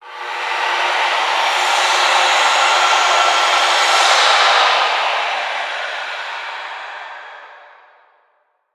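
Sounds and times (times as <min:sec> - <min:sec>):
distant workshop saw: 0:00.0 - 0:07.7.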